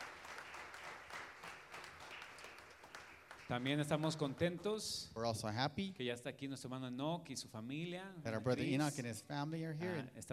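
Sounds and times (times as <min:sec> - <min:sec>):
audience applause: 0:00.0 - 0:04.8
speech: 0:03.5 - 0:10.3.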